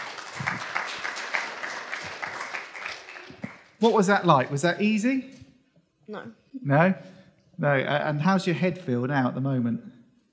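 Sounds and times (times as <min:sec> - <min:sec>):
crowd audience clapping: 0:00.0 - 0:05.0
speech: 0:03.8 - 0:05.4, 0:06.1 - 0:09.9.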